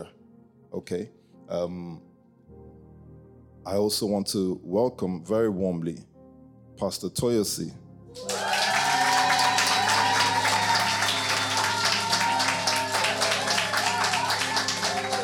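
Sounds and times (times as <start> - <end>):
speech: 0.0 - 2.1, 3.6 - 6.1, 6.8 - 8.5
cheering: 8.2 - 15.2
sustained applause from a large crowd: 8.2 - 15.2.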